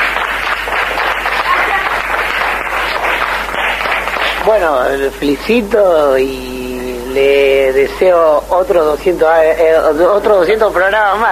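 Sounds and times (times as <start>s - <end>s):
group applauding: 0.0s - 5.2s
speech: 4.5s - 6.5s, 7.1s - 11.3s.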